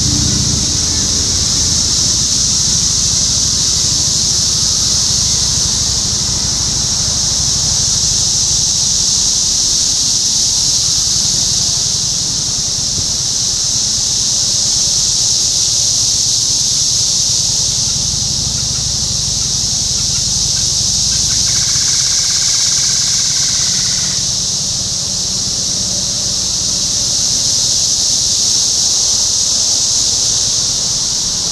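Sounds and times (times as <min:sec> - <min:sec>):
low rumble: 0:00.0 - 0:08.6, 0:17.3 - 0:22.0
rhythmic low engine-like throb: 0:00.0 - 0:09.6, 0:17.2 - 0:24.2
cicadas buzzing: 0:00.0 - 0:31.5.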